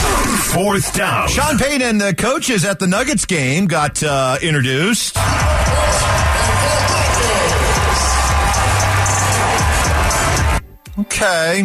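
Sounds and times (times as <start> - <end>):
speech: 0.5 - 6.8, 11.0 - 11.6
crowd applause and cheering: 5.2 - 10.6.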